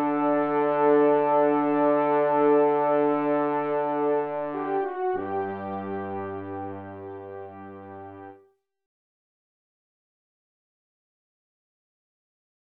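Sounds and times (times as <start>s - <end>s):
brass quintet playing a short love theme: 0.0s - 8.4s.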